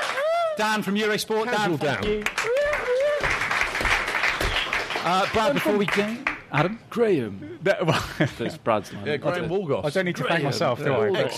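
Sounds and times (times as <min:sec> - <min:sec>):
person whooping: 0:00.0 - 0:00.6, 0:02.4 - 0:03.4
speech: 0:00.6 - 0:02.6, 0:05.0 - 0:11.3
small audience applause: 0:02.0 - 0:06.5.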